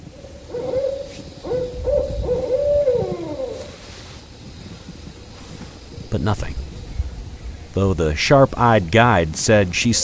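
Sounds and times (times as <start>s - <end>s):
owl hoots from digital owl caller: 0.0s - 3.9s
speech: 6.2s - 6.6s, 7.7s - 10.0s.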